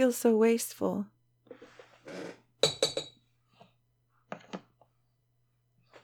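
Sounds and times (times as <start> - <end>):
speech: 0.0 - 1.1
used smoking bowl being dumped out with clinks and taps: 2.6 - 3.2.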